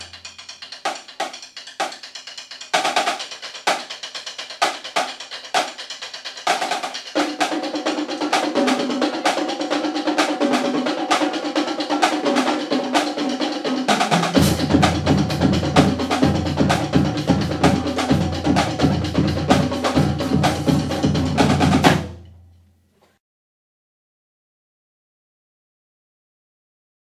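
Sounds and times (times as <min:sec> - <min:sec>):
drumline: 0:00.0 - 0:22.3
marching band: 0:06.5 - 0:22.2.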